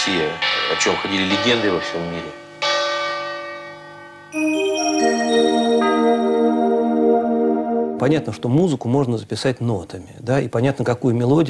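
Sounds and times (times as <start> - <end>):
Russian church bells ringing: 0.0 - 8.7
speech: 0.1 - 2.4, 4.3 - 4.5, 8.0 - 11.4.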